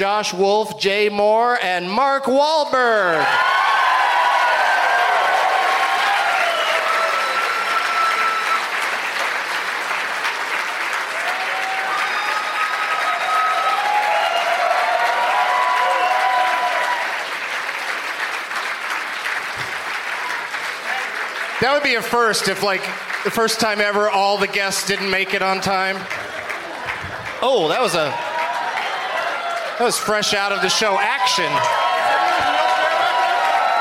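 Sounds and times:
speech: 0:00.0 - 0:03.6, 0:21.6 - 0:26.2, 0:27.4 - 0:28.2, 0:29.8 - 0:31.8
cheering whistles: 0:03.2 - 0:08.8, 0:11.2 - 0:17.1, 0:27.8 - 0:33.7
audience applause welcoming guests: 0:03.2 - 0:33.7.

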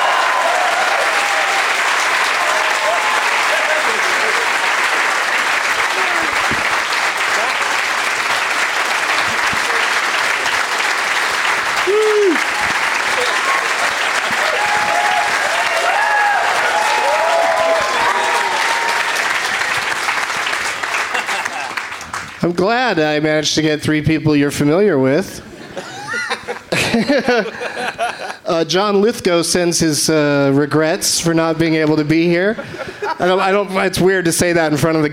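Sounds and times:
show audience applause welcoming three first-time guests: 0:00.0 - 0:22.5
laughter: 0:03.0 - 0:04.7, 0:13.0 - 0:15.2, 0:20.9 - 0:21.9, 0:25.5 - 0:28.7, 0:32.4 - 0:33.9
speech: 0:22.6 - 0:25.5, 0:26.7 - 0:27.7, 0:28.5 - 0:35.1.

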